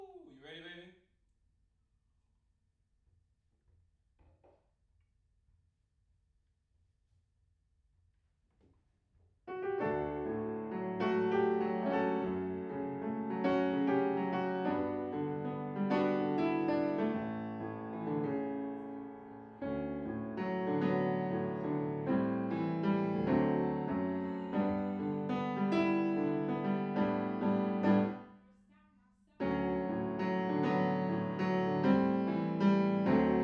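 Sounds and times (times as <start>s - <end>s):
piano in a room: 9.5s - 28.4s, 29.4s - 33.4s.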